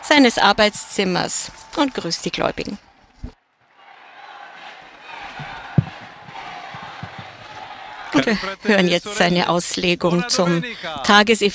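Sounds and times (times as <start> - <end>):
crowd applause: 0.0 - 8.6
speech: 0.2 - 2.9, 8.2 - 11.5.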